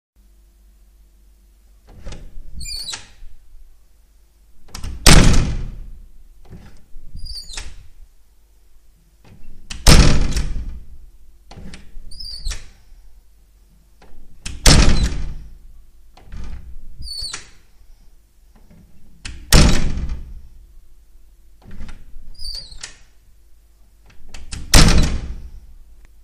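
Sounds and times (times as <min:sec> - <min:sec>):
door opening and closing: 0:01.8 - 0:03.4, 0:04.6 - 0:08.0, 0:09.2 - 0:12.8, 0:14.0 - 0:17.7, 0:18.6 - 0:20.5, 0:21.6 - 0:23.2, 0:24.0 - 0:25.7.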